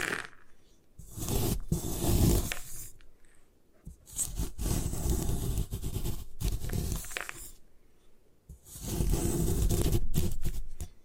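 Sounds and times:
gym chalk being crushed and crumbled: 0.0 - 3.1, 3.9 - 7.6, 8.6 - 11.0.

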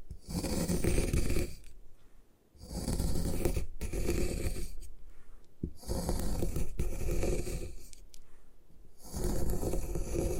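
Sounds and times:
gym chalk crushed and ground: 0.0 - 1.8, 2.6 - 4.9, 5.6 - 8.1, 9.0 - 10.3.

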